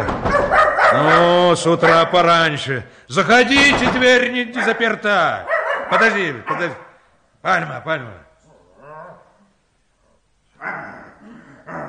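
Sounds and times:
dog barking: 0.3 - 2.1, 4.6 - 6.9
speech: 1.0 - 6.8, 7.4 - 8.2.

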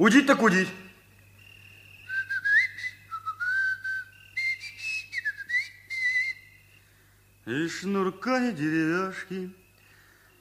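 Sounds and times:
speech: 0.0 - 0.8, 7.5 - 9.6
faint steady hum: 0.0 - 10.3
long drawn-out human whistle: 2.1 - 6.6.

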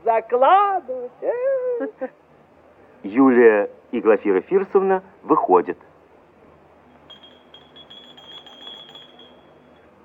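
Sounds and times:
speech: 0.1 - 2.2, 3.0 - 5.9
doorbell ringing: 7.1 - 9.8.

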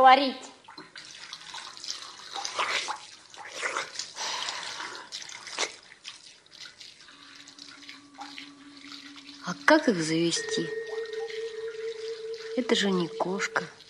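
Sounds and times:
speech: 0.0 - 0.5, 9.7 - 10.8, 12.6 - 13.8
water splashing while washing the floor: 0.5 - 13.8
faint steady hum: 6.4 - 13.8.

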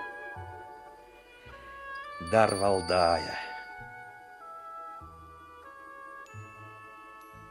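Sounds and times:
troika harness bells jingling: 1.9 - 3.8
speech: 2.3 - 3.5.

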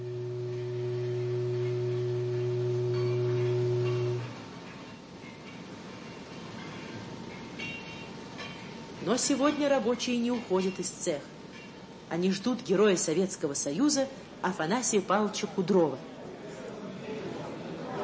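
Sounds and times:
long factory whistle signalling lunch break: 0.0 - 4.4
speech: 9.1 - 11.4, 12.1 - 16.1.

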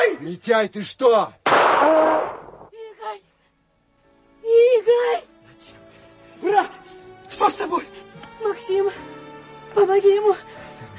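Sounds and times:
speech: 0.2 - 2.4, 4.9 - 5.8, 6.4 - 6.8, 7.4 - 9.2, 9.8 - 10.9
gunshot in a radio drama: 1.5 - 2.7.

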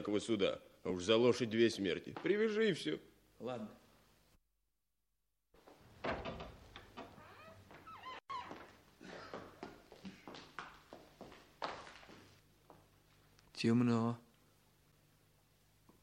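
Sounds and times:
speech: 0.0 - 3.8, 13.6 - 14.2
door creaking open: 5.9 - 8.7
footsteps indoors: 6.6 - 13.4.

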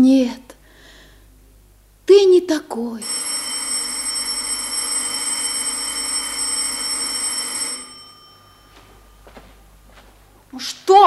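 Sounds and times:
speech: 0.0 - 0.4, 2.1 - 3.2, 10.6 - 11.0
bell ringing: 3.0 - 9.4.

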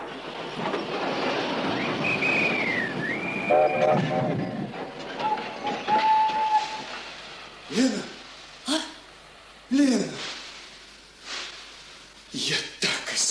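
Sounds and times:
armored train pulling into a railway station: 0.0 - 8.6
armored train whistle tones: 1.8 - 4.6, 5.2 - 6.9.

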